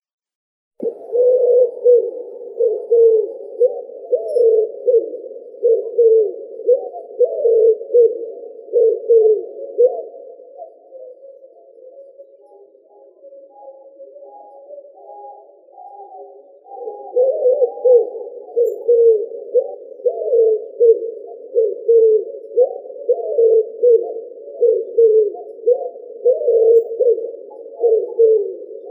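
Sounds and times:
Columba palumbus wood pigeon: 0:00.8 - 0:28.9.

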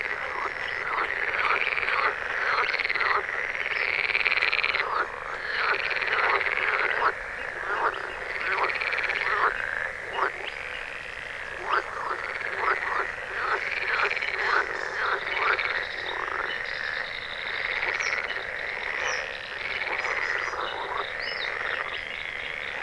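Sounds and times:
frogs croaking in chorus at midnight: 0:00.0 - 0:22.8.

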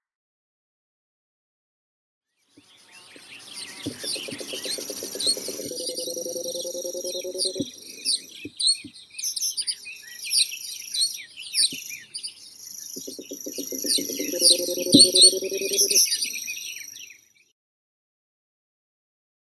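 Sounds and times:
Baillon's crake Porzana pusilla calling: 0:03.1 - 0:17.1.

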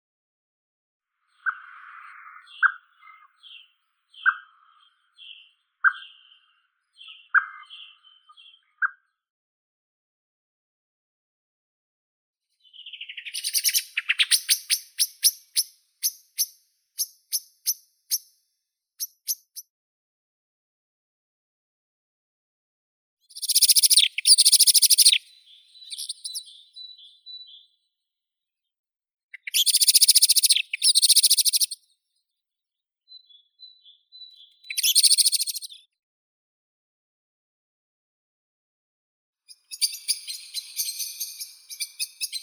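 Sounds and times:
blackbird, Turdus merula: 0:01.2 - 0:09.2, 0:12.6 - 0:18.3, 0:19.0 - 0:19.7, 0:23.3 - 0:27.8, 0:29.3 - 0:31.8, 0:33.1 - 0:36.0, 0:39.5 - 0:42.4.

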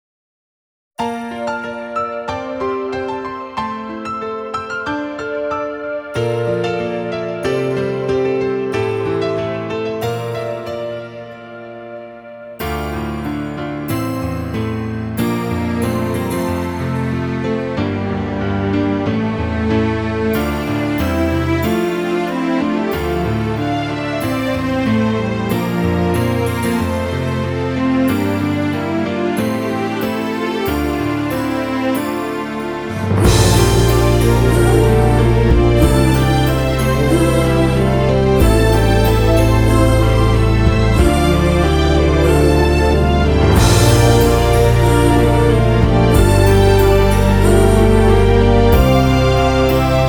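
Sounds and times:
off vocal instrumental music: 0:01.0 - 0:50.0.

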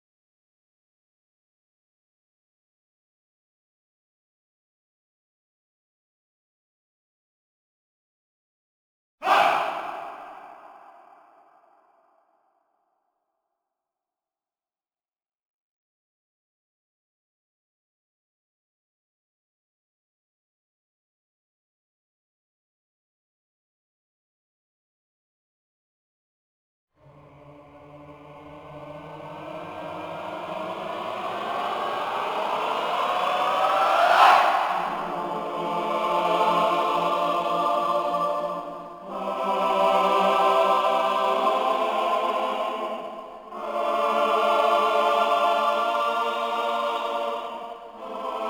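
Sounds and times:
choir singing: 0:09.2 - 0:11.8, 0:27.0 - 0:48.4.

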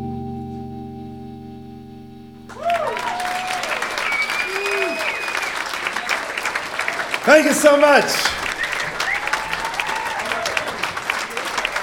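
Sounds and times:
audience applause: 0:02.6 - 0:11.8
speech: 0:07.3 - 0:08.4.

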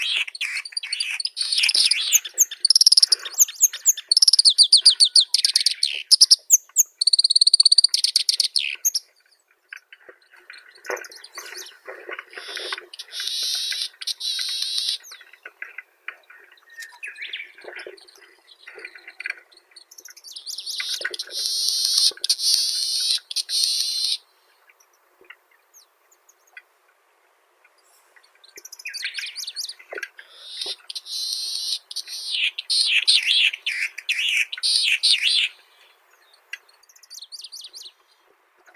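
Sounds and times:
Japanese snipe Gallinago hardwickii: 0:00.0 - 0:09.1, 0:11.0 - 0:15.4, 0:20.3 - 0:24.4, 0:28.6 - 0:36.6.

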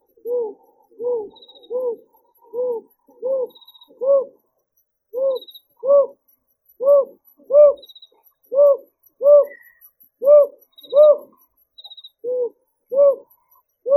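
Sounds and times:
brown hawk-owl Ninox scutulata calling: 0:00.2 - 0:04.4, 0:05.1 - 0:06.2, 0:06.8 - 0:07.9, 0:08.5 - 0:11.4, 0:12.2 - 0:13.9.

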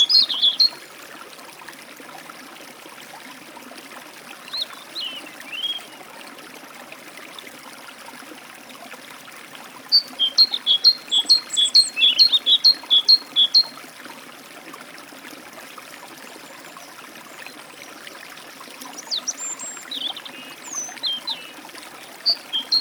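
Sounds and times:
European robin at a forest stream: 0:00.0 - 0:00.8, 0:04.5 - 0:06.0, 0:09.9 - 0:13.8, 0:18.8 - 0:22.7
great tit at a forest stream: 0:00.0 - 0:00.8, 0:04.6 - 0:05.9, 0:10.0 - 0:13.7, 0:19.0 - 0:22.7
forest stream flowing: 0:00.0 - 0:22.7.

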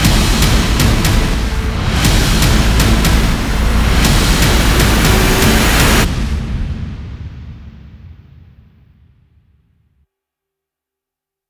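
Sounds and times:
synthesizer music: 0:00.1 - 0:06.4.

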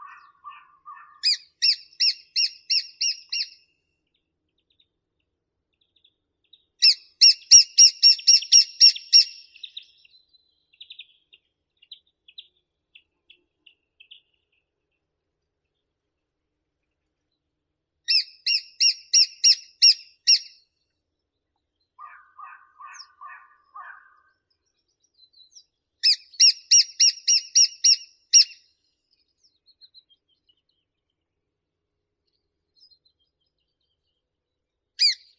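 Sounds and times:
lesser spotted woodpecker Dendrocopos minor: 0:00.0 - 0:03.6, 0:06.8 - 0:10.0, 0:18.1 - 0:20.6, 0:22.0 - 0:24.3, 0:25.3 - 0:28.6, 0:35.0 - 0:35.3.

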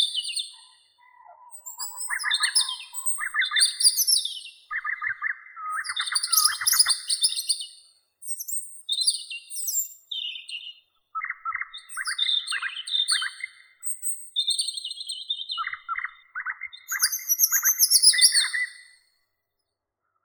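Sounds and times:
nature sounds: 0:00.0 - 0:07.8, 0:11.2 - 0:19.0
European robin Erithacus rubecula: 0:00.0 - 0:19.0.

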